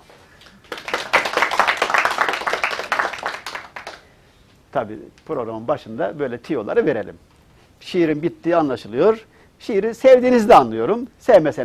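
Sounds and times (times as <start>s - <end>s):
audience clapping: 0.0s - 4.1s
speech: 4.7s - 11.6s.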